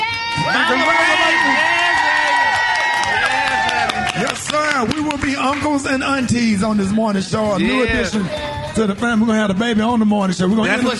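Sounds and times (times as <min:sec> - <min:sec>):
people cheering with whoops and shouting: 0:00.0 - 0:09.3
applause: 0:00.5 - 0:06.5
speech: 0:04.8 - 0:10.9.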